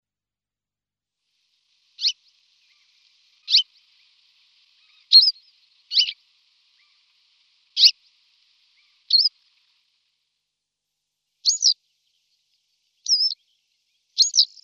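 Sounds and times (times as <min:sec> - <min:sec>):
western yellow wagtail calls: 0:01.8 - 0:10.1, 0:11.4 - 0:12.2, 0:12.9 - 0:14.6.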